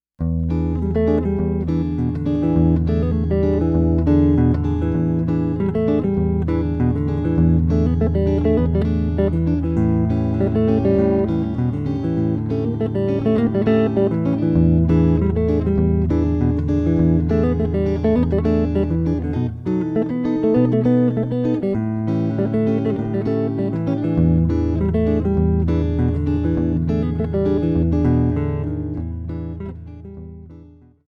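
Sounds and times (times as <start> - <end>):
rhythm guitar: 0.2 - 31.0.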